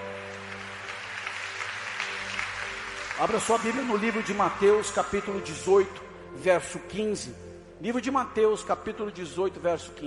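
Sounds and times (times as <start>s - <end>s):
church congregation applauding the Lord: 0.0s - 5.9s
speech: 3.2s - 10.0s.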